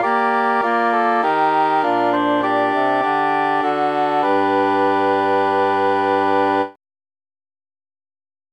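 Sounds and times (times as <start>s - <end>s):
tenor instrument with mute: 0.0s - 6.8s.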